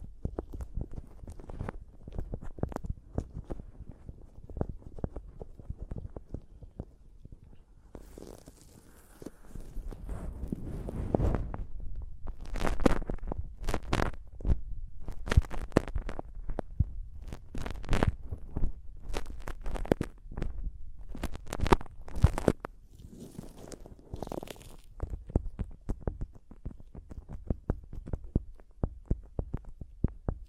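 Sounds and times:
microphone tapping: 0.0 - 30.4.

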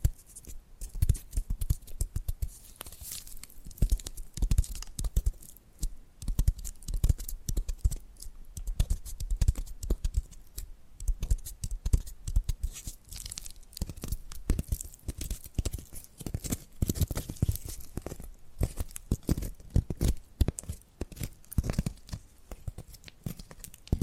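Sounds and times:
papery crinkling and tearing: 0.0 - 5.6, 11.4 - 24.0
tapping and scratching: 0.0 - 24.0.

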